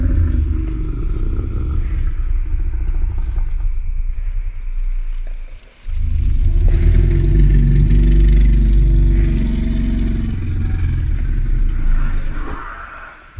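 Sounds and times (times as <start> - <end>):
Carnotaurus call reconstruction: 0.0 - 3.6, 6.0 - 13.3
ambience: 0.0 - 13.3.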